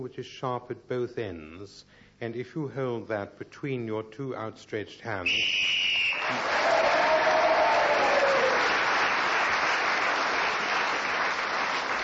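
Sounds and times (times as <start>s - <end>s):
speech: 0.0s - 7.2s
audience cheering: 5.6s - 12.0s.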